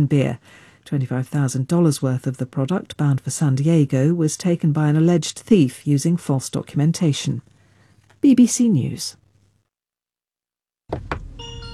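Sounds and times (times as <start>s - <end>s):
speech: 0.0s - 7.5s, 8.2s - 9.2s, 10.9s - 11.2s
short thumps: 10.9s - 11.4s
car welcome chime tune: 11.2s - 11.7s.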